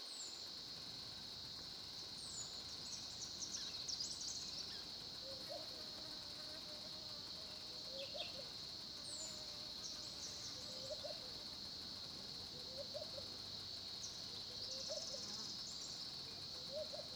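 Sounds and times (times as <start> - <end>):
South African crickets trilling at a small pond: 0.1 - 17.1.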